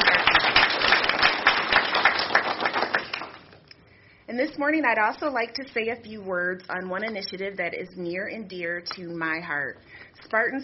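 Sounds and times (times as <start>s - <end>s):
audience applause for campus grounds staff: 0.0s - 3.5s
speech: 4.4s - 10.6s.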